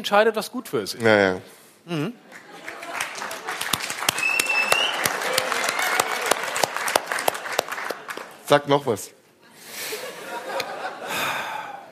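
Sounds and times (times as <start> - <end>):
speech: 0.0 - 2.4, 8.5 - 9.2
laughter: 2.2 - 3.7, 9.9 - 11.9
audience applause: 2.3 - 8.6.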